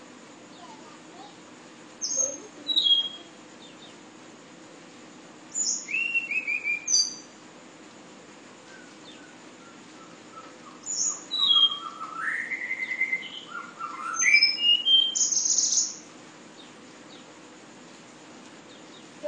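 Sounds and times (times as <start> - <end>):
flowerpecker whistled song in sulingan style: 2.0 - 4.0, 5.5 - 7.4, 8.6 - 17.3.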